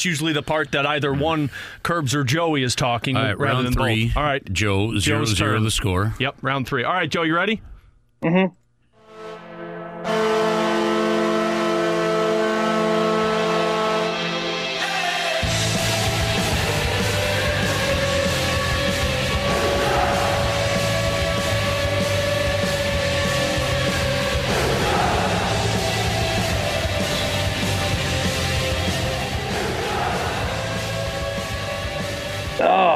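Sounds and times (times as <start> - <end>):
speech: 0.0 - 8.6
hockey goal horn: 8.9 - 14.9, 15.6 - 29.6
loud driving rock song: 14.2 - 32.6.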